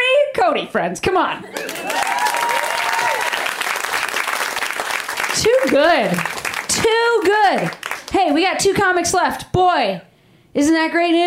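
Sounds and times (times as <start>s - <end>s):
speech: 0.4s - 2.2s, 5.4s - 11.2s
hands clapping: 1.6s - 8.9s.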